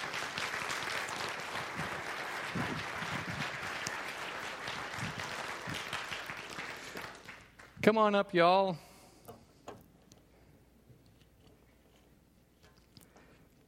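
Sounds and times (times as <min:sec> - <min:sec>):
audience applause: 0:00.0 - 0:07.8
speech: 0:07.8 - 0:08.9.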